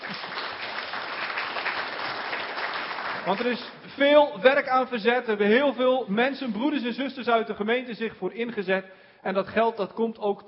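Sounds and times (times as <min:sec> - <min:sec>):
church congregation applauding a fundraising result: 0:00.0 - 0:03.8
speech: 0:03.2 - 0:10.4.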